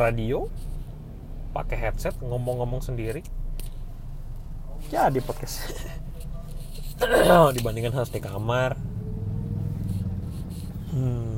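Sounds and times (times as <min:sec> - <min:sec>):
speech: 0:00.0 - 0:00.7, 0:01.5 - 0:03.4, 0:04.8 - 0:06.0, 0:07.0 - 0:08.9, 0:10.9 - 0:11.3
low engine rumble in a car interior: 0:00.0 - 0:11.3.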